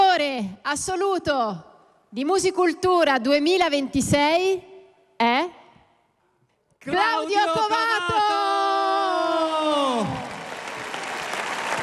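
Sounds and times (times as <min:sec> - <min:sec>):
speech: 0:00.2 - 0:05.6, 0:06.8 - 0:08.3
audience applause: 0:09.3 - 0:11.8.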